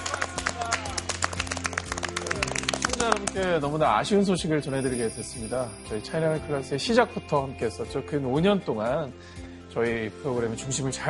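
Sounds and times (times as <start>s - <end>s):
audience applause: 0.0s - 3.4s
speech: 3.0s - 11.0s.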